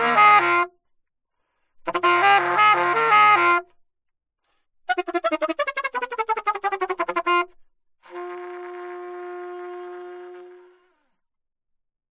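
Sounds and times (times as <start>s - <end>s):
alto saxophone: 0.0s - 0.8s, 1.8s - 3.7s, 4.9s - 11.2s.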